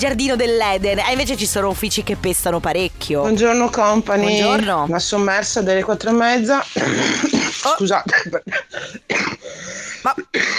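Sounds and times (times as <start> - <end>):
speech: 0.0 - 10.5
person with influenza coughing: 6.8 - 10.5
gasping breaths: 8.7 - 10.1.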